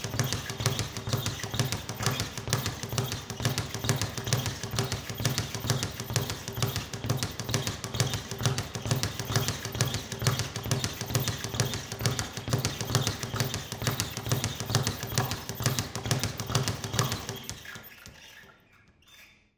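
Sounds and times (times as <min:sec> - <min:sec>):
boxing gymnasium ambience: 0:00.0 - 0:19.5.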